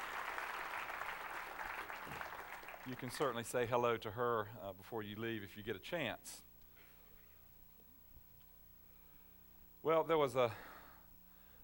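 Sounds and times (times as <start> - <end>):
faint audience applause: 0.0 - 3.5
speech: 2.8 - 6.5, 9.8 - 10.7.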